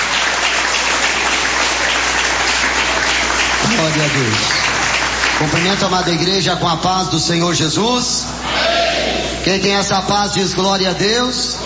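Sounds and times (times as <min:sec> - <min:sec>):
audience applauding: 0:00.0 - 0:06.6
speech: 0:03.8 - 0:04.8, 0:05.4 - 0:08.6, 0:09.4 - 0:11.6.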